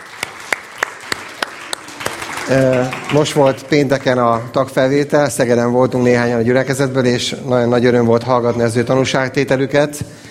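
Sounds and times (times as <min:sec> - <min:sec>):
audience applause: 0:00.0 - 0:04.6
speech: 0:02.5 - 0:10.2.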